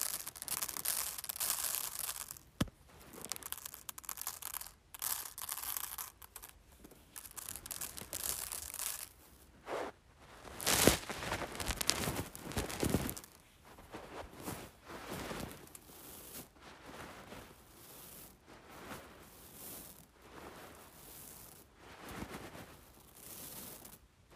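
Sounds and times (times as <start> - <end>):
playing with rice: 0.0 - 24.0.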